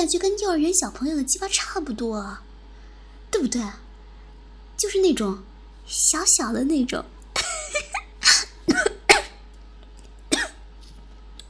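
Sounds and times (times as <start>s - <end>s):
speech: 0.0s - 2.5s, 3.3s - 3.8s, 4.8s - 7.2s
person choking and coughing on saliva: 7.4s - 9.4s, 10.3s - 10.6s.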